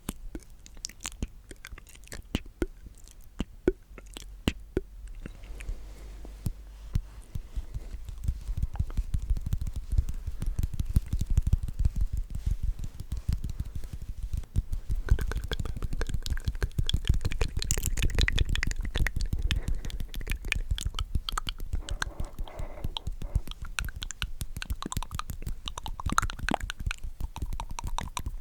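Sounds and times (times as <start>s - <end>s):
wet mouth clicks, smacks and chewing-like crunches: 0.0s - 28.3s.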